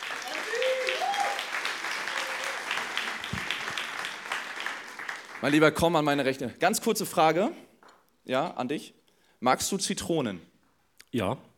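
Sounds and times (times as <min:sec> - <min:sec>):
audience applause: 0:00.0 - 0:06.0
speech: 0:05.4 - 0:07.6, 0:08.2 - 0:10.5, 0:11.1 - 0:11.5.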